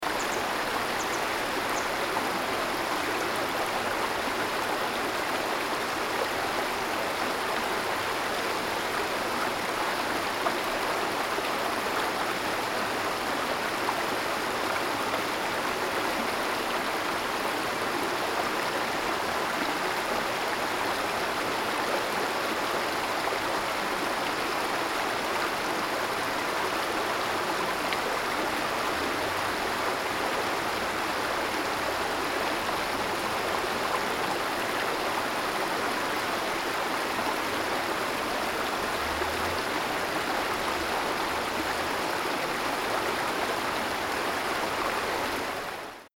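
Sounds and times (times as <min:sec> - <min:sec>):
river: 0:00.0 - 0:46.1.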